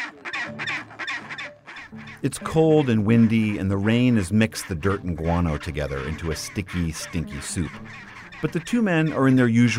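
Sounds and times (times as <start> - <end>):
chinstrap penguin colony calling with harsh braying squawks: 0.0 - 9.7
speech: 2.2 - 9.7.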